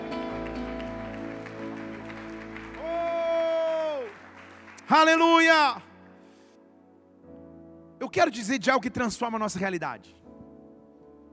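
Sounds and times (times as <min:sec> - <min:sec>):
audience applause: 0:00.0 - 0:05.7
speech: 0:04.9 - 0:05.8, 0:08.1 - 0:10.2.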